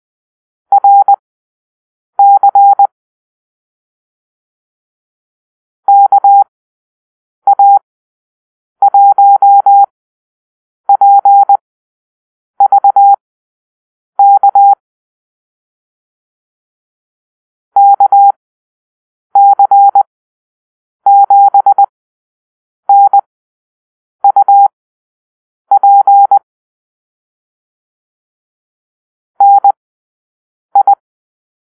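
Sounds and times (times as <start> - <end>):
morse code call-sign beeps: 0.7 - 1.2, 2.2 - 2.9, 5.9 - 6.5, 7.5 - 7.8, 8.9 - 9.9, 10.9 - 11.6, 12.6 - 13.2, 14.2 - 14.8, 17.8 - 18.4, 19.4 - 20.1, 21.1 - 21.9, 22.9 - 23.3, 24.2 - 24.7, 25.7 - 26.4, 29.4 - 29.8, 30.8 - 31.0.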